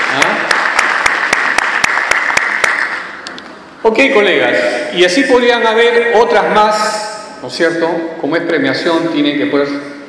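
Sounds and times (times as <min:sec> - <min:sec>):
audience applause: 0:00.0 - 0:03.1
speech: 0:03.9 - 0:10.0.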